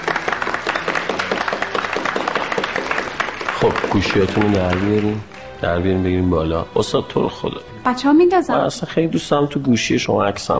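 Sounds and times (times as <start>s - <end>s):
group of students clapping in honor of a guest: 0.0s - 6.0s
speech: 3.6s - 10.5s.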